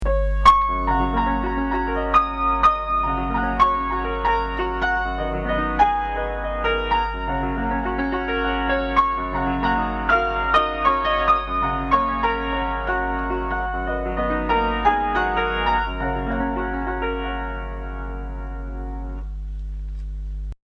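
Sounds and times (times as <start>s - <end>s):
spring piano music: 0.0s - 19.4s.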